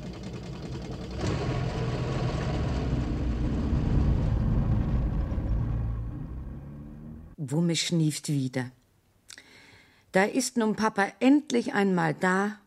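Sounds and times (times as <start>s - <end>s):
car engine while driving: 0.0s - 7.4s
speech: 7.4s - 8.8s, 10.1s - 12.6s.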